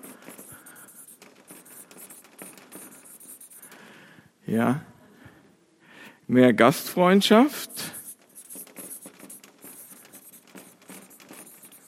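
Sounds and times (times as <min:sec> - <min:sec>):
pen scratching on paper writing a note: 0:00.0 - 0:03.8, 0:07.6 - 0:11.8
speech: 0:04.5 - 0:04.9, 0:06.3 - 0:07.8.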